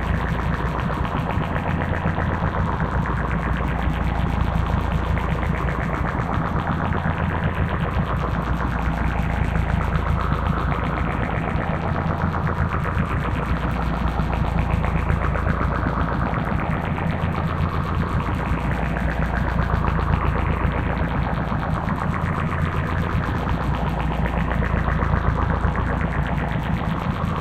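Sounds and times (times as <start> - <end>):
flanged sci-fi drone: 0.0 - 27.3.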